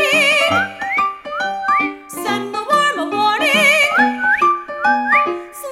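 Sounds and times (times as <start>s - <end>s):
melody: 0.1s - 2.2s, 3.5s - 5.5s.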